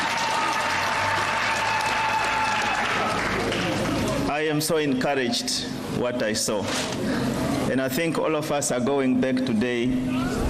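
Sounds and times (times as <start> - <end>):
round of applause: 0.0 - 4.3
speech: 4.4 - 10.4.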